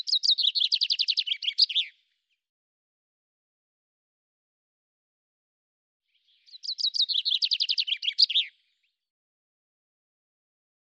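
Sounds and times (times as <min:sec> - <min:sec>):
common chaffinch song with descending trilled phrases: 0:00.0 - 0:02.4, 0:06.1 - 0:09.1.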